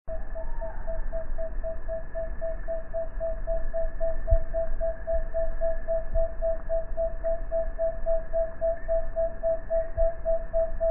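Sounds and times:
tawny-bellied screech owl song: 0:00.1 - 0:01.2
low hum: 0:00.1 - 0:10.8.

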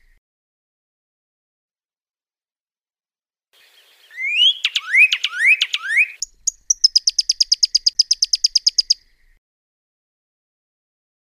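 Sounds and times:
Pyrrhuloxia song with downslurred whistles and rapid trill: 0:04.0 - 0:09.0.

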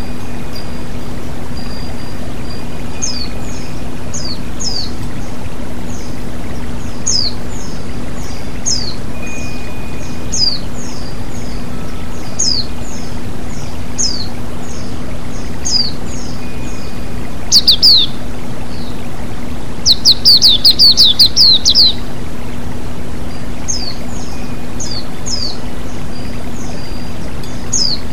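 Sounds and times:
white-eye chirping: 0:00.0 - 0:28.1.

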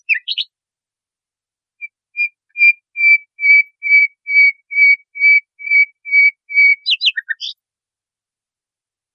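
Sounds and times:
nightingale song on a training recording for cage birds: 0:00.0 - 0:00.6, 0:01.8 - 0:07.6.

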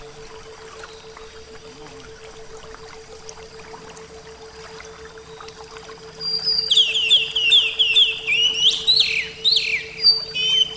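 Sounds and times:
Oriental magpie-robin song: 0:00.7 - 0:02.0, 0:06.2 - 0:10.7.

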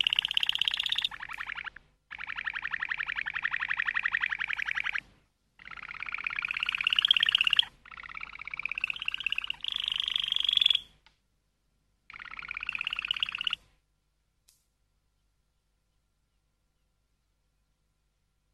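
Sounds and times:
Waterslager canary song: 0:00.0 - 0:11.0, 0:12.1 - 0:13.7.

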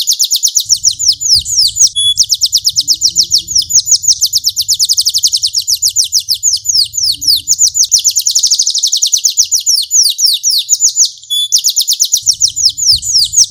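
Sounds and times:
large lemon canary song with descending trills: 0:00.0 - 0:13.4.

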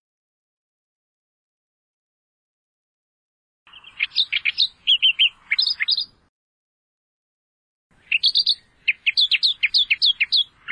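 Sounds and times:
Australian reed warbler song: 0:03.7 - 0:06.3, 0:07.9 - 0:10.6.

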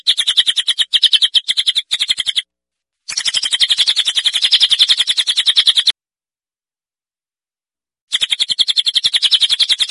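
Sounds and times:
cililin buzzy chattering: 0:00.0 - 0:02.5, 0:03.1 - 0:05.9, 0:08.1 - 0:09.8.

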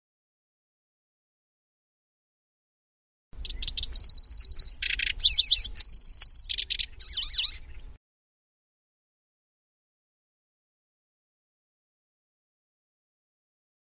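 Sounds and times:
lanceolated warbler singing: 0:03.4 - 0:08.0.

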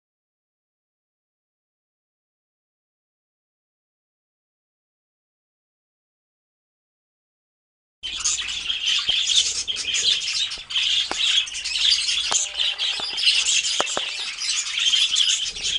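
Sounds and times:
group of budgerigars twittering and squawking: 0:08.0 - 0:15.7
sharp clicks: 0:12.2 - 0:14.3.

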